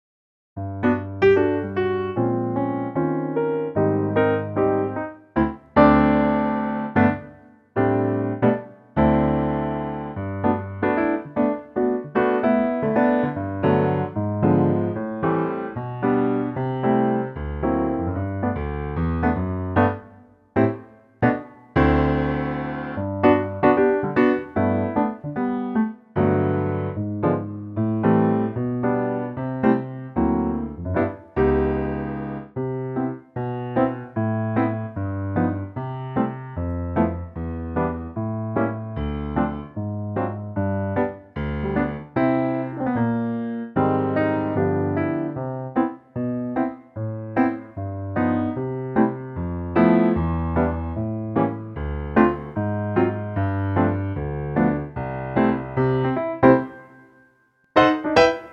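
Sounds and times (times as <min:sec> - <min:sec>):
GC piano: 0:00.6 - 0:58.5.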